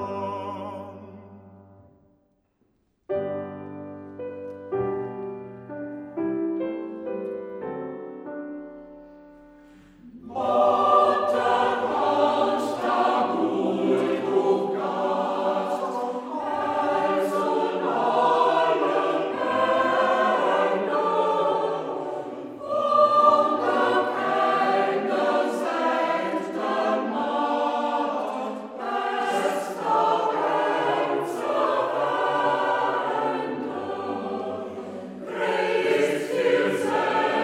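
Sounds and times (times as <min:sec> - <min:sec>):
Transylvanian Saxon choir singing in the Hermannstadt dialect: 0:00.0 - 0:01.9, 0:09.7 - 0:37.4
piano: 0:00.0 - 0:02.3, 0:03.1 - 0:37.4.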